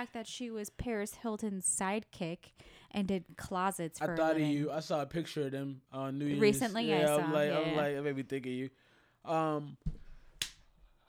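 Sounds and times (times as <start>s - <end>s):
speech: 0.0s - 10.0s
hand clapping: 9.9s - 10.6s.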